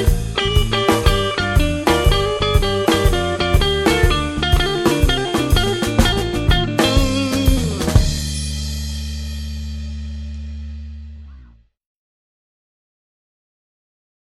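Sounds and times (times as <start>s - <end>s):
blues jazz music: 0.0s - 8.9s.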